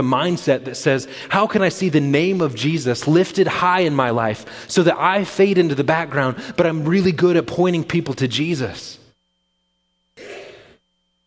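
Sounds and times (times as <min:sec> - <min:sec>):
speech: 0:00.0 - 0:09.0
mighty sneeze: 0:10.2 - 0:10.8.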